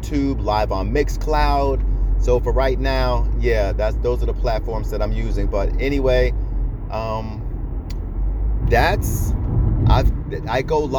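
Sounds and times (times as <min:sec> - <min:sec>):
car engine and road rumble driving to Walmart: 0:00.0 - 0:10.9
speech: 0:00.1 - 0:07.4, 0:08.7 - 0:10.9.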